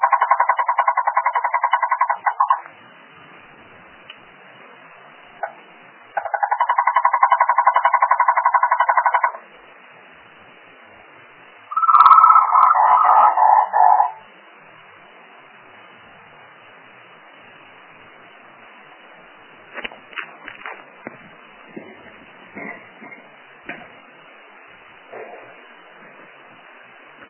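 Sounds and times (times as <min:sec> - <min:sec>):
frog: 0:00.0 - 0:02.7, 0:05.4 - 0:09.5, 0:11.7 - 0:14.3.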